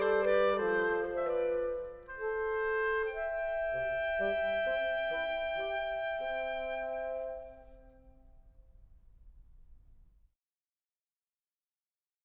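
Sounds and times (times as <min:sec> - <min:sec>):
musical trio: 0:00.0 - 0:08.2.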